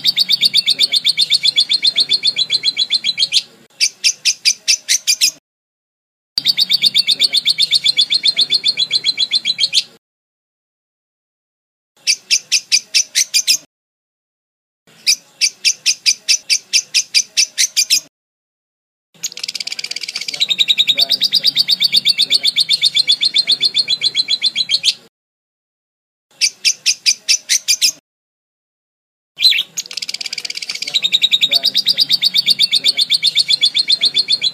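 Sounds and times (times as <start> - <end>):
lovebird chattering: 0.0 - 5.4, 6.4 - 10.0, 12.0 - 13.7, 15.0 - 18.1, 19.2 - 25.1, 26.4 - 28.0, 29.4 - 34.5.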